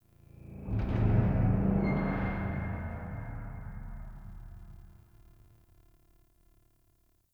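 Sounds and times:
metallic low frequency effects: 0.1s - 5.5s.

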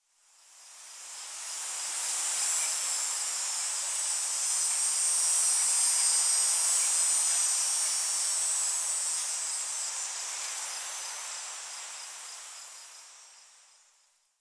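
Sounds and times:
tree cicada: 0.1s - 14.3s.

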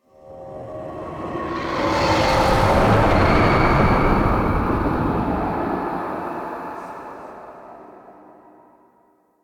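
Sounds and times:
spectral whoosh: 1.4s - 8.1s.

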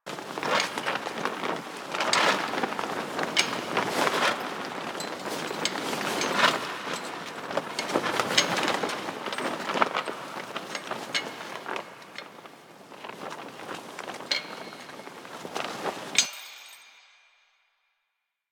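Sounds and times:
tarp rustling: 0.0s - 16.7s.

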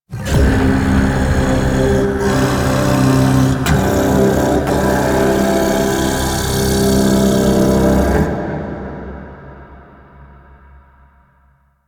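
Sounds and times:
vocals: 0.0s - 11.1s.

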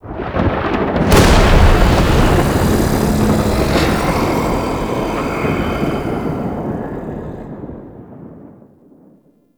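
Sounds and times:
thunder clap: 0.1s - 8.5s
exterior murmur: 1.1s - 7.9s.

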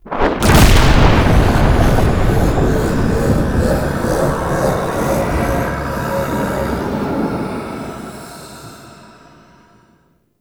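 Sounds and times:
exterior thunder clap: 0.0s - 7.7s.

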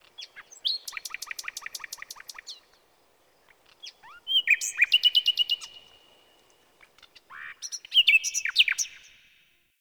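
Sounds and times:
tree critters on the plains: 0.0s - 7.5s.

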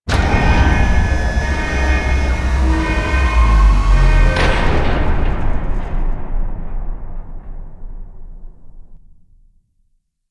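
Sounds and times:
elevator: 0.1s - 5.3s.

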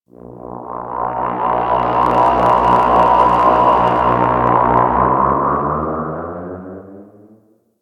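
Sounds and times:
small ship passing by outdoors: 0.5s - 6.6s.

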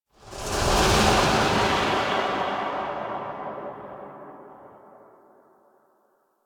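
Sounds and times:
ambient transition: 0.2s - 5.6s.

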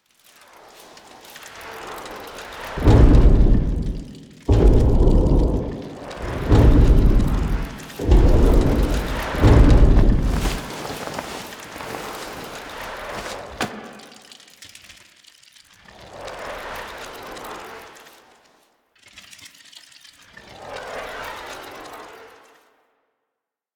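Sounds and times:
landing foley: 2.8s - 14.1s.

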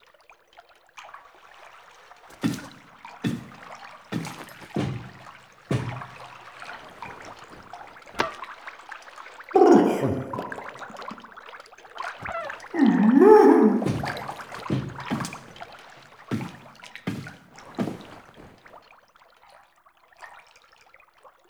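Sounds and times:
hug foley: 2.3s - 8.4s, 9.6s - 11.2s, 12.2s - 18.6s.

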